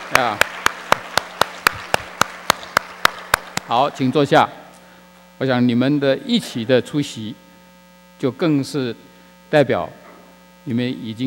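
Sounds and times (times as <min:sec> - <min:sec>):
rhythmic clapping: 0:00.0 - 0:04.2
speech: 0:00.1 - 0:00.5, 0:03.7 - 0:04.6, 0:05.4 - 0:07.4, 0:08.2 - 0:10.0, 0:10.6 - 0:11.2
soft hiss: 0:03.6 - 0:11.2.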